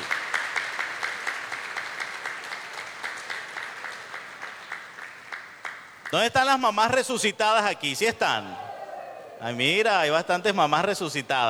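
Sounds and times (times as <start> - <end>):
applause for mothers: 0.0 - 7.2
speech: 6.1 - 8.6, 9.4 - 11.4.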